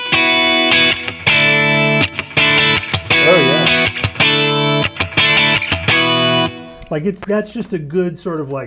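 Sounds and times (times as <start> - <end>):
clean springy electric guitar chords through a compressor effect: 0.0 - 6.9
speech: 6.9 - 8.6.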